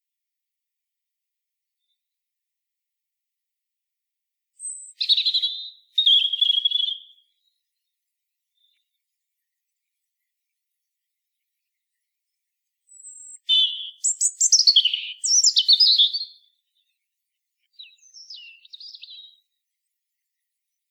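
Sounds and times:
European robin singing: 0:04.6 - 0:07.3, 0:12.8 - 0:17.0, 0:17.6 - 0:19.5.

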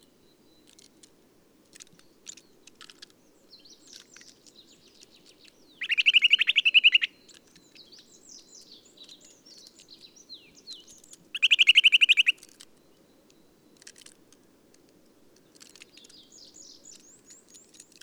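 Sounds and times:
Eurasian nuthatch calling with loud piping notes: 0:03.5 - 0:12.6.

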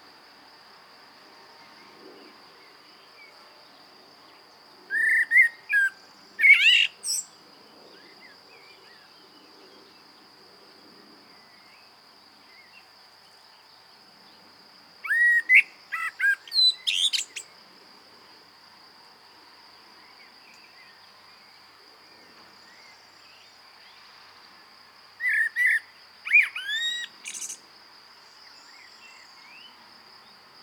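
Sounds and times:
common blackbird singing: 0:04.9 - 0:07.3, 0:15.1 - 0:17.5, 0:25.2 - 0:27.6.

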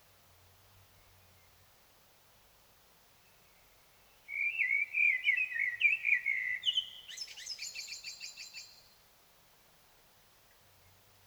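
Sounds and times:
common blackbird singing: 0:04.3 - 0:08.7.

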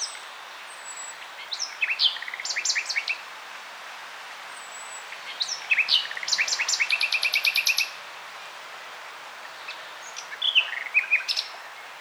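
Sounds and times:
common nightingale Luscinia megarhynchos song: 0:00.0 - 0:03.2, 0:04.5 - 0:08.0, 0:09.4 - 0:11.9.

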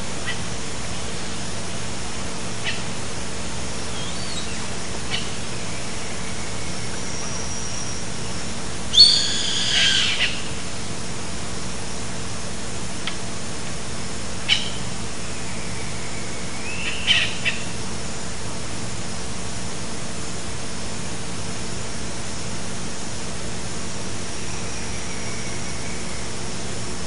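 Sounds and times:
low background hum: 0:00.0 - 0:27.0
bird harsh calls: 0:02.6 - 0:02.9, 0:03.9 - 0:08.3, 0:08.9 - 0:10.6, 0:14.4 - 0:17.8.

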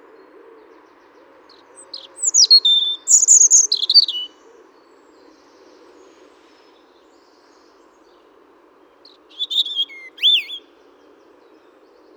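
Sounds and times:
European robin Erithacus rubecula singing: 0:01.8 - 0:04.3, 0:09.0 - 0:10.7.

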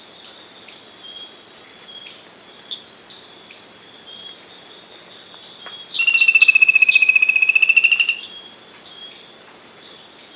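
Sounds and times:
pulsing bird whistle: 0:06.0 - 0:08.3.

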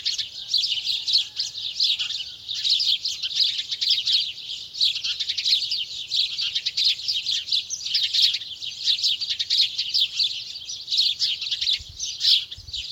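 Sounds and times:
Passer domesticus house sparrows chirping: 0:00.0 - 0:12.9.

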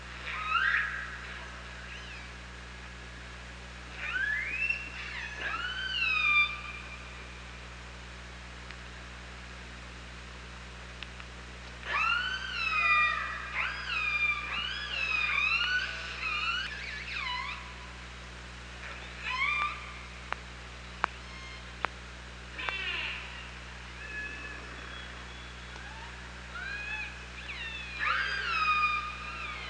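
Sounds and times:
low hum: 0:00.0 - 0:29.6
killer whale calls underwater: 0:00.2 - 0:02.4, 0:03.9 - 0:07.1, 0:11.8 - 0:18.0, 0:18.8 - 0:20.1, 0:21.2 - 0:21.7, 0:22.5 - 0:29.6.

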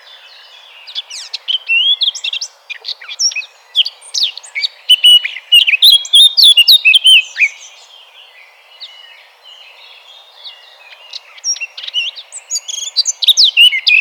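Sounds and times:
Eurasian blackcap Sylvia atricapilla singing: 0:00.0 - 0:08.0, 0:10.5 - 0:14.0.

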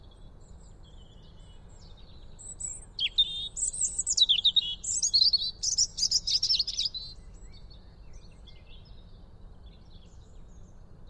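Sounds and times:
European robin singing: 0:00.0 - 0:11.0.

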